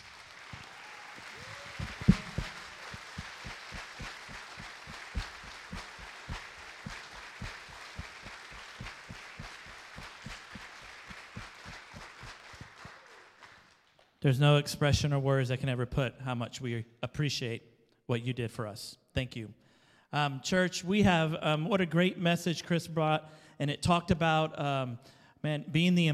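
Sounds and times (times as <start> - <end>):
round of applause for veterans: 0.0 - 13.8
speech: 14.3 - 26.1.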